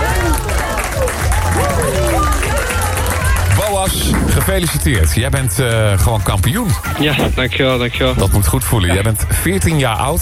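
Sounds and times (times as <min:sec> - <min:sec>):
applause: 0:00.0 - 0:05.6
speech: 0:04.5 - 0:10.2.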